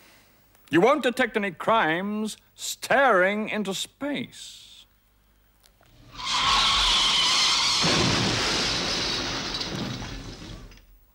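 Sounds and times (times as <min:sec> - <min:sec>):
speech: 0:00.7 - 0:04.7
car skid with screeching tire squeal: 0:06.1 - 0:08.2
glass shattering: 0:06.2 - 0:10.8.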